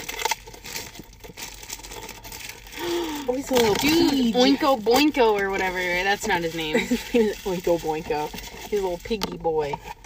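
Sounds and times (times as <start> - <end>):
plastic blind bag crinkled and torn open: 0.0 - 10.0
speech: 3.3 - 9.9.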